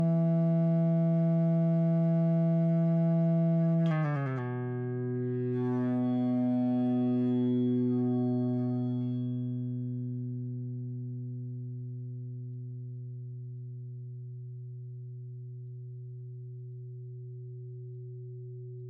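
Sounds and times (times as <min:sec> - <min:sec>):
dry EBow guitar drone: 0:00.0 - 0:11.6.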